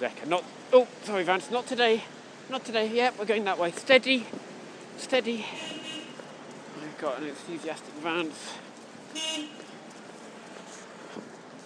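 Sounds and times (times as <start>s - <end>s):
speech: 0.0s - 4.4s, 5.0s - 5.8s, 7.0s - 9.6s
street traffic hum with faint rumbles: 0.0s - 11.6s
car horn honk: 5.5s - 6.2s, 9.1s - 9.7s.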